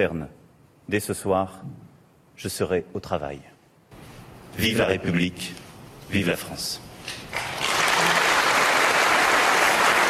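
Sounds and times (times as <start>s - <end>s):
speech: 0.0s - 1.8s, 2.4s - 3.5s, 4.6s - 7.2s
applause after presidential speech: 7.3s - 10.0s.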